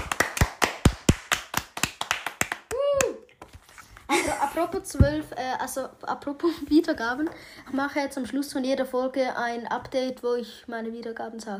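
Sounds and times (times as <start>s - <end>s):
hands clapping along: 0.0s - 3.6s
speech: 4.2s - 11.5s.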